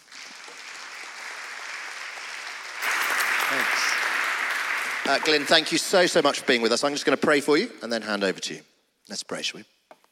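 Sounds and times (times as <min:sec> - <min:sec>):
audience applause welcoming a speaker: 0:00.0 - 0:07.1
speech: 0:03.5 - 0:03.9, 0:05.1 - 0:09.7.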